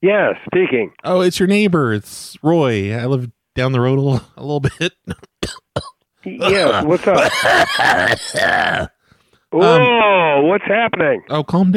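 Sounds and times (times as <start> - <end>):
speech: 0.0 - 8.9, 9.5 - 11.7
harsh coughs: 4.7 - 8.9.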